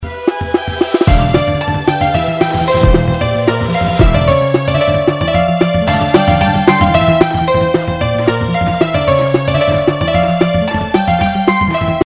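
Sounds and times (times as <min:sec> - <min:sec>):
music: 0:00.0 - 0:12.0.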